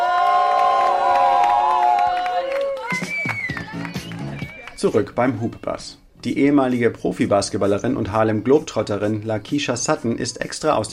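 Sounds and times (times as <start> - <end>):
crowd cheering and shouting: 0.0 - 4.8
speech: 4.8 - 10.9.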